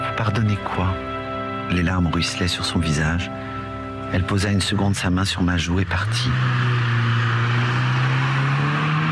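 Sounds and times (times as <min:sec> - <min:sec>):
speech: 0:00.2 - 0:01.1, 0:01.7 - 0:03.5, 0:04.1 - 0:07.0
car driving away: 0:05.8 - 0:09.0.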